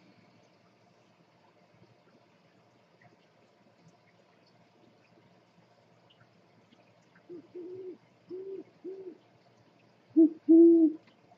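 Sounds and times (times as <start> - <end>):
owl hooting: 7.3 - 9.2, 10.2 - 11.0.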